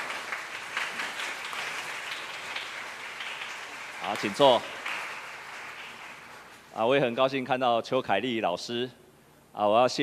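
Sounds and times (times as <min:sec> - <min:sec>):
audience applause: 0:00.0 - 0:06.6
speech: 0:04.0 - 0:04.8, 0:06.8 - 0:09.0, 0:09.6 - 0:10.0.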